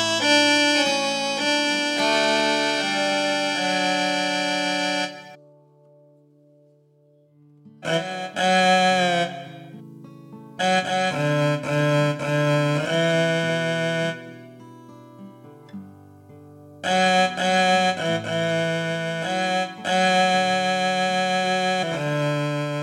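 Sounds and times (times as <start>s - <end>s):
instrumental viola playing: 0.0s - 5.4s, 7.8s - 9.8s, 10.6s - 14.6s, 16.8s - 22.8s.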